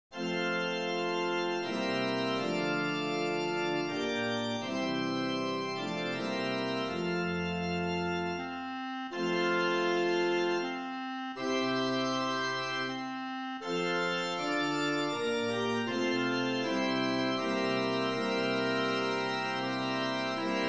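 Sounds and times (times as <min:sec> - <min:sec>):
three-voice organ music: 0:00.2 - 0:20.6.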